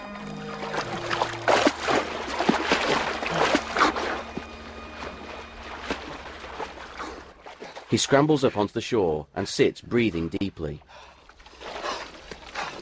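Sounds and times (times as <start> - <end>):
low steady hum: 0.0 - 7.6
water splashing as a person swims across a river: 0.0 - 9.1, 11.0 - 12.8
speech: 7.9 - 11.1.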